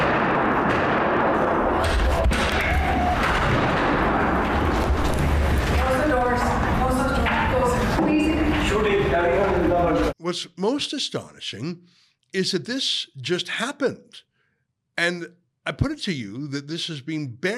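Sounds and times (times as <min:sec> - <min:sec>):
gunfire from footage of an attacker shooting up a building: 0:00.0 - 0:06.4
continuous roar of noise: 0:00.0 - 0:10.1
speech: 0:10.3 - 0:14.3, 0:15.0 - 0:17.5.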